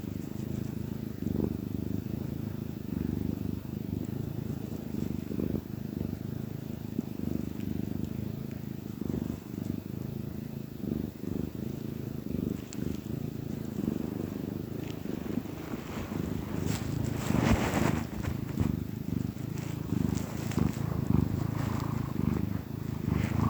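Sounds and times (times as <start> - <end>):
domestic cat purring: 0.0 - 23.4.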